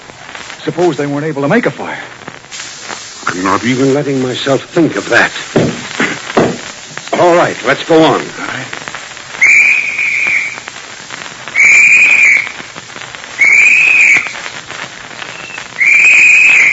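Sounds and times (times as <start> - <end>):
steady noise: 0.0 - 16.7
speech: 0.6 - 2.2, 3.3 - 5.8, 7.2 - 8.4
search party whistle signal blasts: 9.4 - 10.7, 11.5 - 12.6, 13.3 - 14.5, 15.2 - 16.7.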